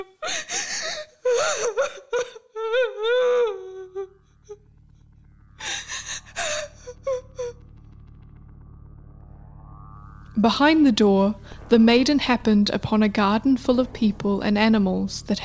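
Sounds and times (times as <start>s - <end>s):
woman sobbing and wailing: 0.0s - 4.6s, 5.6s - 7.7s
speech: 10.4s - 15.4s.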